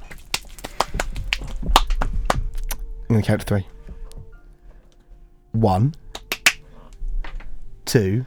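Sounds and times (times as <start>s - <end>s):
slap: 0.1s - 2.8s, 6.1s - 6.6s
speech: 3.1s - 3.8s, 5.6s - 6.0s, 7.9s - 8.2s.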